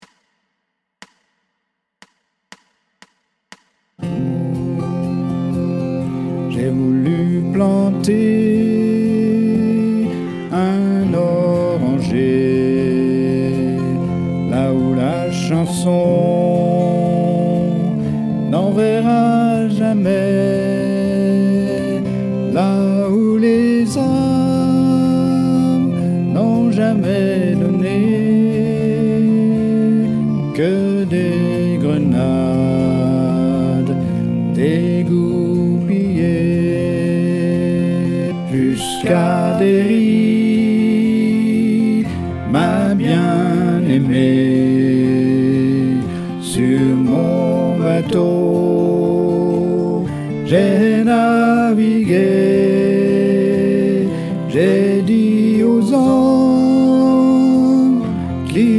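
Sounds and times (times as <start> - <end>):
soprano singing a ballad: 4.0 - 58.7.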